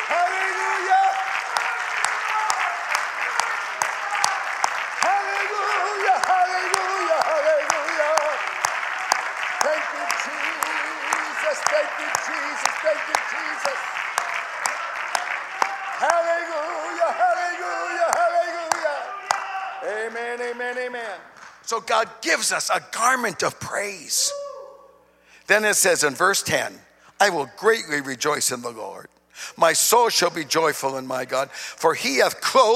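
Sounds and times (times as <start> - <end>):
audience clapping hands: 0.0 - 21.9
speech: 21.7 - 24.4, 25.5 - 32.7.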